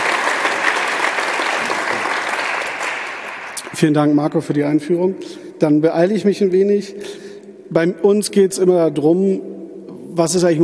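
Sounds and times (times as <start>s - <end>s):
audience applauding: 0.0s - 3.8s
speech: 3.8s - 9.5s, 10.2s - 10.6s.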